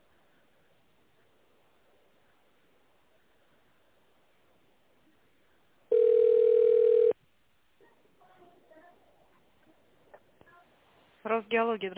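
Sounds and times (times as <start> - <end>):
telephone ringback tone: 5.9 - 7.2
speech: 11.4 - 11.9.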